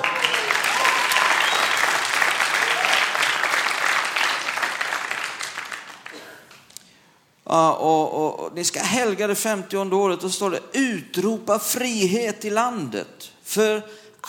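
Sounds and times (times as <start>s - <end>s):
audience applause: 0.0s - 6.6s
speech: 7.5s - 14.2s.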